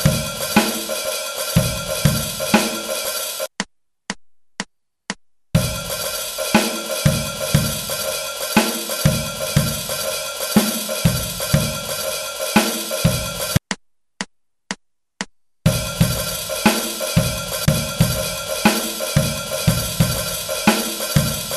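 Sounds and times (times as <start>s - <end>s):
shuffle halftime beat: 0.0s - 4.2s, 5.6s - 21.5s.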